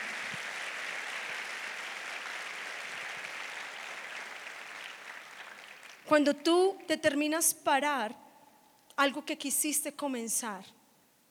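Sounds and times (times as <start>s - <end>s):
audience applauding: 0.0s - 6.1s
speech: 6.1s - 8.2s, 9.0s - 10.8s.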